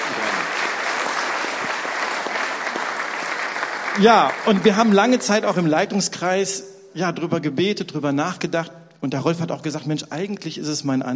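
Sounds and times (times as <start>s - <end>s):
audience applause: 0.0s - 5.9s
speech: 4.0s - 11.1s.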